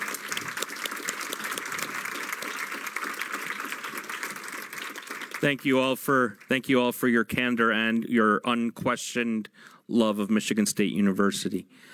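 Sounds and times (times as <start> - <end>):
audience applause: 0.0 - 6.5
speech: 5.4 - 11.9.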